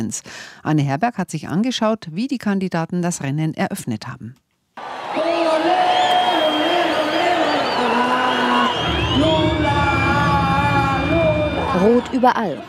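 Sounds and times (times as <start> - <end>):
speech: 0.0 - 4.4, 11.8 - 12.6
whistles: 4.8 - 12.2
political rally crowd cheering and chanting in stadium: 4.8 - 12.6.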